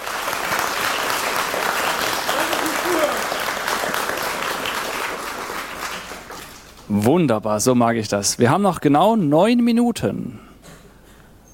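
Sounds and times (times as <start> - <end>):
audience applause: 0.0 - 6.8
speech: 6.9 - 10.5.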